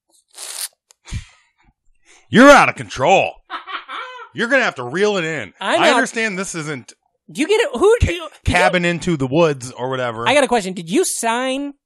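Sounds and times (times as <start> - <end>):
speech: 2.3 - 3.4, 4.4 - 11.8
laughter: 2.4 - 6.8, 8.5 - 9.9
person sneezing: 5.8 - 6.0.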